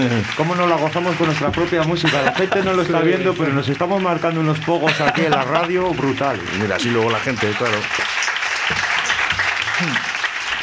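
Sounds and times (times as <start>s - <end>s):
laughter: 0.0s - 8.1s, 8.8s - 10.2s
speech: 0.0s - 8.1s, 9.8s - 10.1s
faint voices murmuring: 0.0s - 8.2s
small group applauding: 0.0s - 10.6s.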